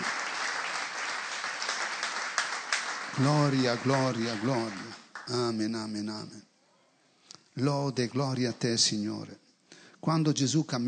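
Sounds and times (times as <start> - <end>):
church congregation applause during worship: 0.0 - 6.0
speech: 3.2 - 6.5, 7.6 - 9.4, 10.0 - 10.8.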